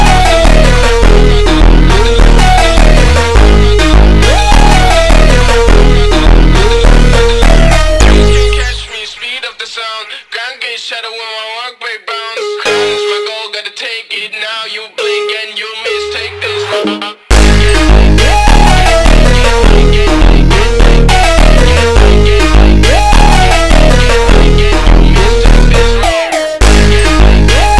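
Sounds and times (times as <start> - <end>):
slowed montagem music: 0.0 - 9.0, 15.0 - 27.7.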